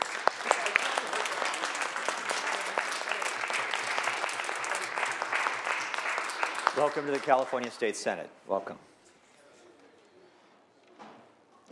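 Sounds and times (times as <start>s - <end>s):
senate members clapping on the California State Senate floor: 0.0s - 8.0s
speech: 6.8s - 8.9s.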